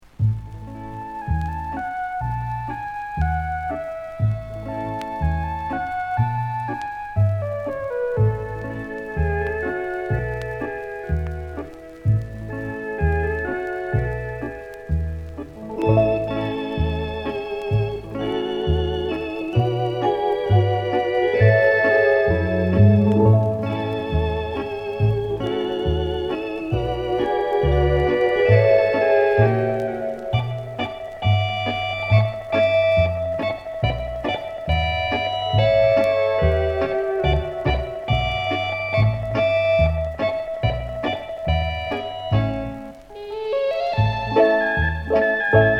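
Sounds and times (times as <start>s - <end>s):
orchestra: 0.0s - 45.7s.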